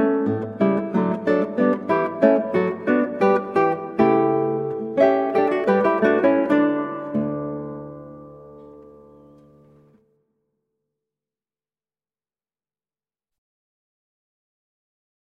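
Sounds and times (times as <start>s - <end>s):
guitar playing a minuet: 0.0s - 10.0s.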